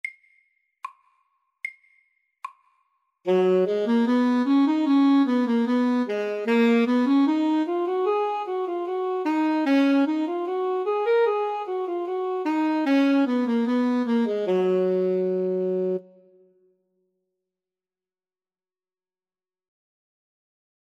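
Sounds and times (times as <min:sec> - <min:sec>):
etude: 0:03.3 - 0:16.4.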